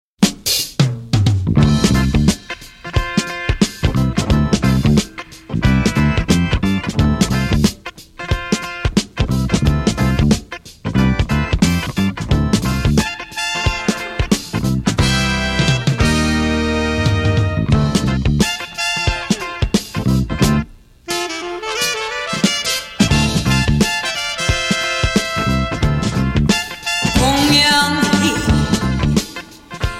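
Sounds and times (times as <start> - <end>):
funky Korean soul music: 0.3 - 29.9.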